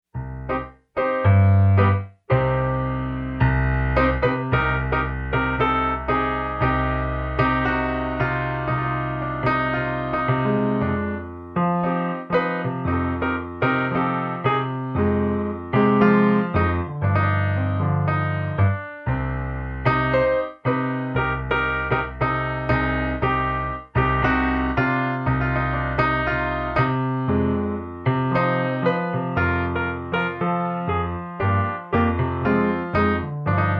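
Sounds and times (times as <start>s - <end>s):
tango piano: 0.1s - 33.7s.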